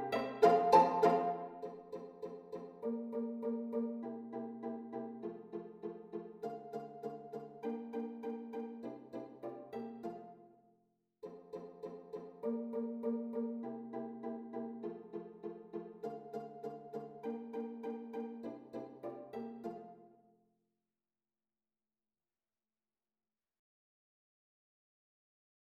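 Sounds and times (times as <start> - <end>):
viola ensemble pizzicato: 0.0 - 10.4, 11.2 - 20.1.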